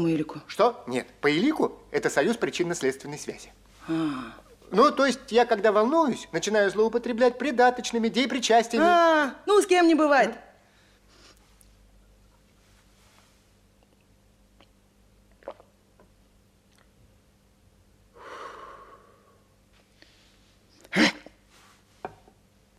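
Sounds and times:
speech: 0.0s - 10.5s
hiccups: 20.8s - 21.4s.

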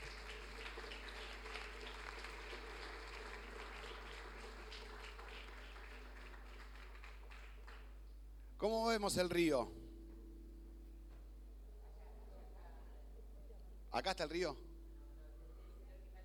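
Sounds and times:
group applause: 0.0s - 8.1s
speech: 8.6s - 9.8s, 14.0s - 14.7s.

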